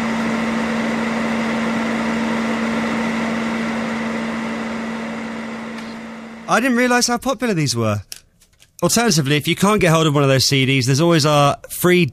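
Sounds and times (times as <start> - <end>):
vacuum cleaner running: 0.0 - 6.8
speech: 6.5 - 8.2, 8.8 - 12.1.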